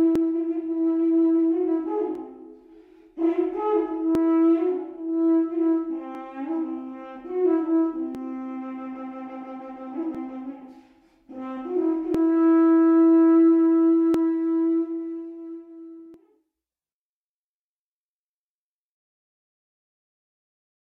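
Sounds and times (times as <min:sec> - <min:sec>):
erke horn solo: 0:00.0 - 0:16.2.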